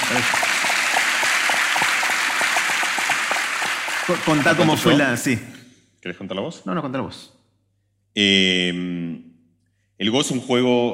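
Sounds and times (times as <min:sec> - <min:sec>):
group of people applauding: 0:00.0 - 0:05.5
speech: 0:00.1 - 0:00.4, 0:04.1 - 0:07.4, 0:08.2 - 0:09.3, 0:10.0 - 0:10.9.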